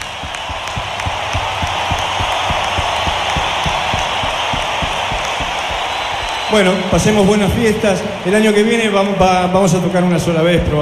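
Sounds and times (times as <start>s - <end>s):
large crowd applauding: 0.0s - 9.5s
speech: 6.5s - 10.7s.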